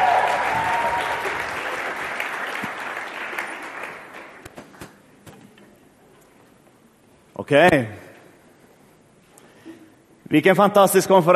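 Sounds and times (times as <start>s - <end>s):
audience applause: 0.0s - 4.5s
speech: 7.5s - 8.0s, 10.3s - 11.3s.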